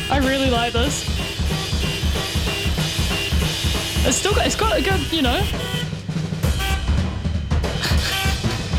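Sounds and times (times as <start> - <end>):
car horn honks from vacuum-driven instruments: 0.0 - 8.7
speech: 0.1 - 1.2, 4.0 - 5.8.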